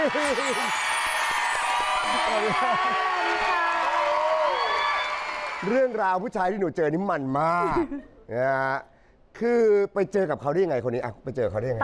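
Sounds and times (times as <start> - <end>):
speech: 0.0 - 1.0, 2.1 - 3.6, 5.6 - 11.8
audience applause and cheering: 0.0 - 6.3.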